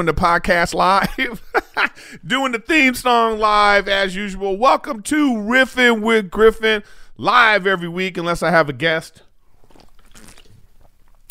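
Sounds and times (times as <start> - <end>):
speech: 0.0 - 9.2
person drinking water: 9.4 - 11.2.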